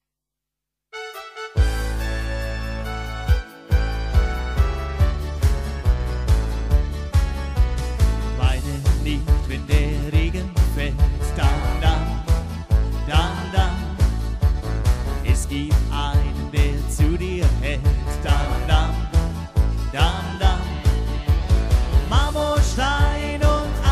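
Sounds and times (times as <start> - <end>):
Schlager party medley: 1.0 - 23.9.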